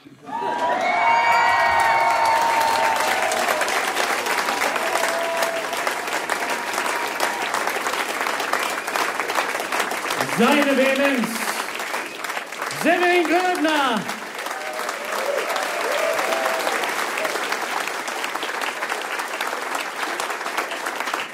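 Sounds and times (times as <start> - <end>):
audience applause: 0.0 - 21.3
cheers and whoops: 0.2 - 7.8, 14.4 - 17.4
speech: 10.4 - 11.4, 12.8 - 14.2.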